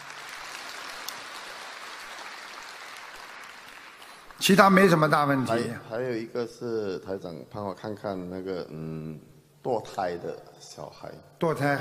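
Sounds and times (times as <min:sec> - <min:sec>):
audience applause: 0:00.0 - 0:04.4
speech: 0:04.4 - 0:11.7.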